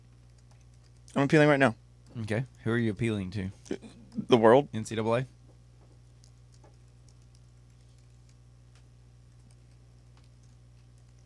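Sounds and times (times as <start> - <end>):
typing on a keyboard: 0.1 - 1.2, 6.2 - 8.4, 9.3 - 11.2
speech: 1.2 - 5.4.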